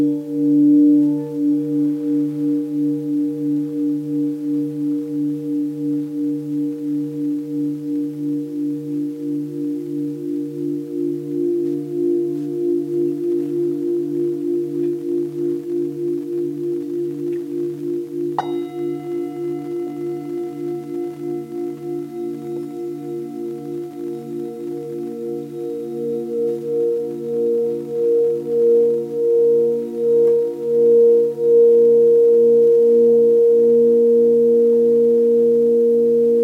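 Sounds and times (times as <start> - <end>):
Tibetan singing bowls humming: 0.0 - 36.4
Tibetan singing bowl struck and ringing: 18.4 - 28.7.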